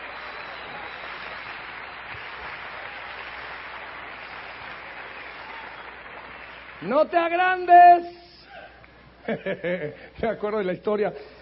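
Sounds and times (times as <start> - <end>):
crowd applause: 0.0 - 7.2
speech: 6.8 - 8.2, 9.3 - 11.4.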